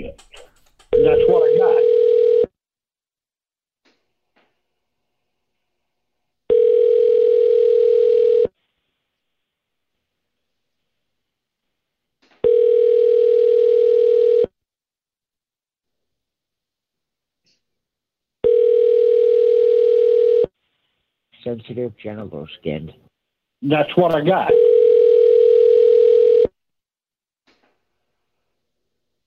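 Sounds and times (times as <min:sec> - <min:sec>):
telephone ringing on an outgoing call: 0:00.9 - 0:02.5, 0:06.5 - 0:08.5, 0:12.4 - 0:14.5, 0:18.4 - 0:20.5, 0:24.4 - 0:26.5
speech: 0:21.6 - 0:24.7.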